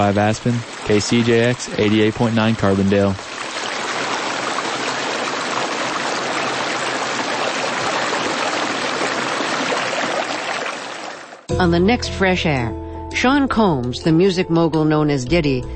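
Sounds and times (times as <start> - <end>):
speech: 0.0 - 3.3, 11.6 - 15.7
creek water flowing: 0.0 - 11.5.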